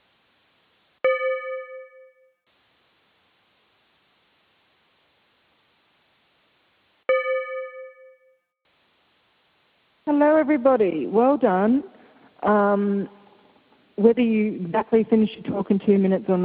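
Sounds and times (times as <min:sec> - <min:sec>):
bell ringing: 0:01.0 - 0:02.4, 0:07.1 - 0:08.4
speech: 0:10.1 - 0:13.2, 0:14.0 - 0:16.4.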